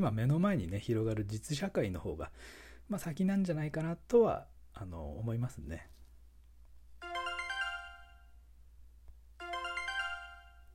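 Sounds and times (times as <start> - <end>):
speech: 0.0 - 6.0
email notification chime on a phone: 7.0 - 8.4, 9.4 - 10.7.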